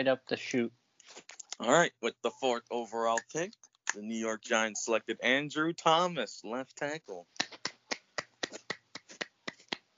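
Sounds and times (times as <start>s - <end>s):
speech: 0.0s - 7.4s
single person clapping hands: 7.4s - 9.8s.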